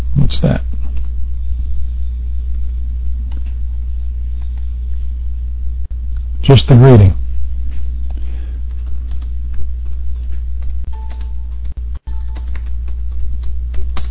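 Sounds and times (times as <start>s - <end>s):
loud steady low hum: 0.0s - 14.0s
speech: 0.3s - 0.7s, 6.5s - 7.2s
computer keyboard typing: 8.1s - 10.3s, 11.0s - 14.0s.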